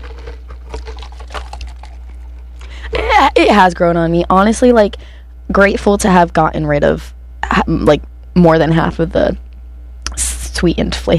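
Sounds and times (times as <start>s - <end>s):
person sipping a drink: 0.0s - 2.8s
speech: 2.9s - 9.4s, 10.2s - 11.1s.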